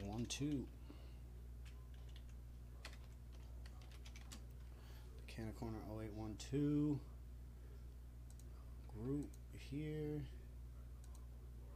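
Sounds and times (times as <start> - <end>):
speech: 0.2 - 0.8, 5.4 - 7.1, 8.9 - 10.4
keystrokes on a computer keyboard: 1.6 - 4.5.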